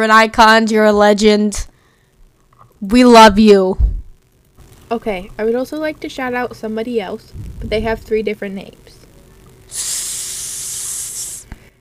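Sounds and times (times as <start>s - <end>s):
speech: 0.0s - 1.7s, 2.8s - 4.0s, 4.9s - 8.9s, 9.7s - 10.1s
person hissing like a snake: 9.7s - 11.6s.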